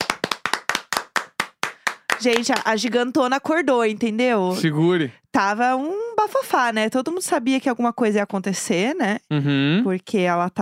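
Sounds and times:
hand clapping: 0.0s - 2.8s
speech: 2.2s - 10.6s.

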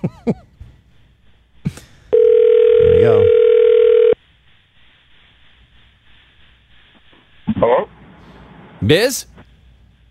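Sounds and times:
speech: 0.0s - 0.4s, 8.9s - 9.4s
telephone tone over a phone line: 2.1s - 4.2s.

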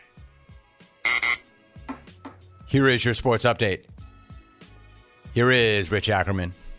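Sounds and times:
harsh loud buzzer: 1.1s - 1.4s
speech: 2.7s - 3.9s, 5.3s - 6.6s.

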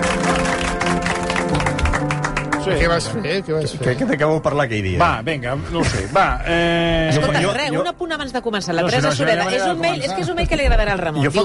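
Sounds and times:
applause: 0.0s - 3.1s
speech: 2.7s - 11.4s.

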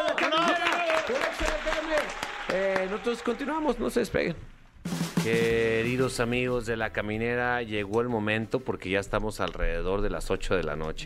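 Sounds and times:
audience applause: 0.0s - 4.4s
speech: 2.1s - 11.0s.

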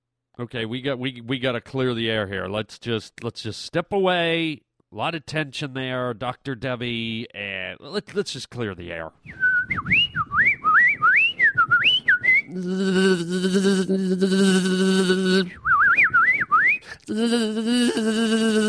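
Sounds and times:
speech: 0.4s - 10.1s, 12.5s - 15.7s, 17.0s - 18.6s
person whistling imitating birdsong: 9.3s - 12.6s, 15.5s - 17.0s
person buzzing imitating bees: 12.5s - 15.6s, 16.9s - 18.6s.

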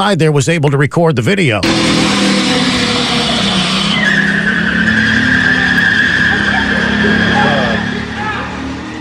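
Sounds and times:
speech: 0.0s - 2.4s
car tires spinning after crashing through wall: 1.6s - 9.0s
loud sustained car engine roar: 1.6s - 9.0s.

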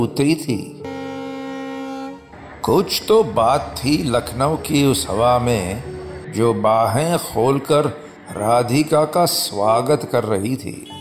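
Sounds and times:
speech: 0.0s - 0.8s, 2.6s - 10.9s
train horn blast at a railway station: 0.8s - 6.2s.

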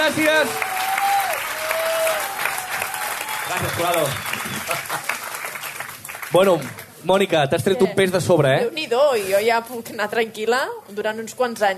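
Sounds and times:
audience applause: 0.0s - 7.0s
speech: 0.1s - 0.8s, 3.5s - 5.2s, 6.3s - 11.7s.

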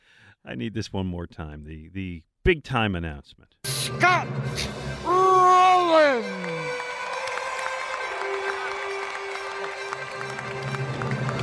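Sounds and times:
speech: 0.4s - 6.8s
stadium crowd polite applause: 5.7s - 11.4s.

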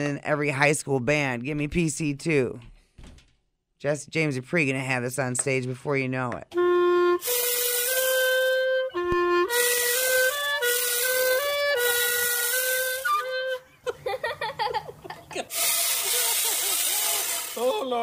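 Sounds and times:
speech: 0.0s - 2.7s, 3.8s - 6.6s
chainsaw clarinet playing a wavering melody: 6.5s - 13.7s, 15.5s - 18.0s
laughter: 13.8s - 18.0s.

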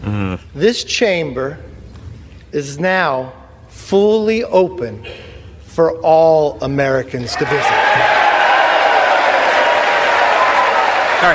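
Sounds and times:
speech: 0.1s - 1.7s, 2.5s - 8.0s
applause in legislative chamber: 7.6s - 11.3s.

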